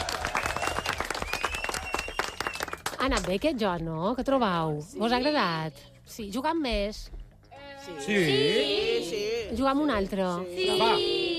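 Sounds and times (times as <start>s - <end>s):
group applause: 0.0s - 3.3s
speech: 3.0s - 7.2s, 7.8s - 11.2s.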